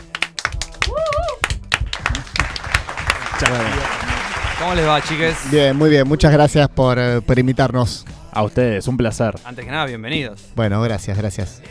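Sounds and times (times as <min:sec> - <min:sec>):
audience applause: 0:00.0 - 0:05.8
speech: 0:03.4 - 0:04.0, 0:04.6 - 0:11.7.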